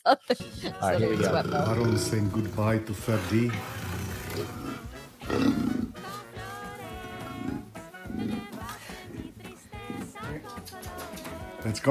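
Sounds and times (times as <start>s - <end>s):
speech: 0.1s - 3.8s, 4.4s - 5.7s, 11.7s - 11.8s
puma growling and snarling: 0.8s - 6.0s, 7.2s - 10.3s.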